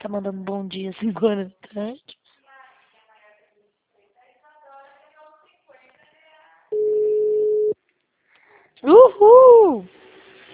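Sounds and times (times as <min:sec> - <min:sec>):
speech: 0:00.0 - 0:02.2, 0:08.8 - 0:10.0
telephone busy signal: 0:06.8 - 0:07.8.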